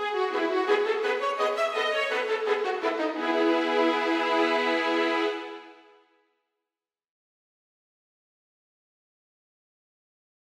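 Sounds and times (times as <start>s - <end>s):
polka music: 0.0s - 5.8s.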